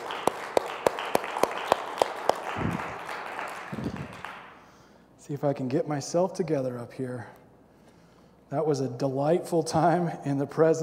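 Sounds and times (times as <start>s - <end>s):
round of applause: 0.0s - 4.7s
speech: 5.3s - 7.4s, 8.5s - 10.8s.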